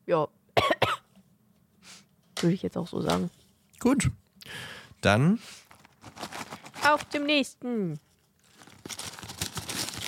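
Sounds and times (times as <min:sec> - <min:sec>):
speech: 0:00.1 - 0:00.4, 0:01.9 - 0:05.6, 0:06.9 - 0:08.1
rustling: 0:05.6 - 0:07.4, 0:08.0 - 0:10.0.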